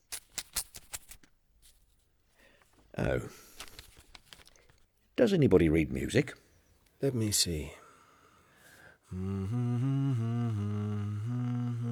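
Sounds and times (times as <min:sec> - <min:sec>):
envelope being opened with crisp paper tearing: 0:00.0 - 0:01.3
soft paper rustle: 0:00.0 - 0:02.8, 0:03.4 - 0:04.9
speech: 0:03.0 - 0:03.5, 0:05.2 - 0:06.4, 0:07.0 - 0:07.8, 0:09.1 - 0:11.4.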